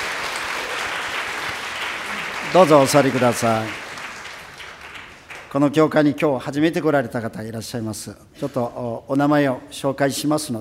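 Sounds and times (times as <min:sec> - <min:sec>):
congregation applause in a church for members celebrating birthdays: 0:00.0 - 0:05.8
speech: 0:02.5 - 0:03.8, 0:05.5 - 0:10.5.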